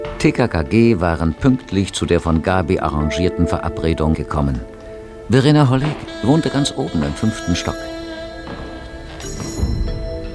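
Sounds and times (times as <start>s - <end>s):
speech: 0.2s - 4.7s, 5.3s - 8.0s
doorbell ringing: 6.1s - 10.3s.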